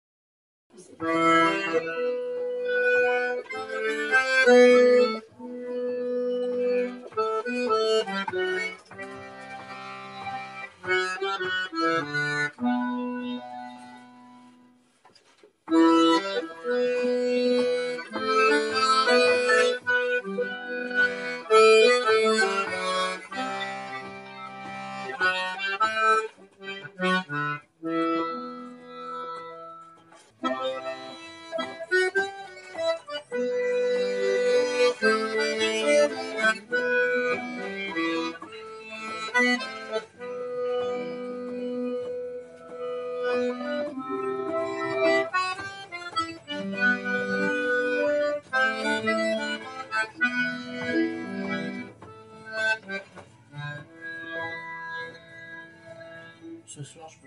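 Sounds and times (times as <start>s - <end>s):
mazurka: 0.8s - 57.2s.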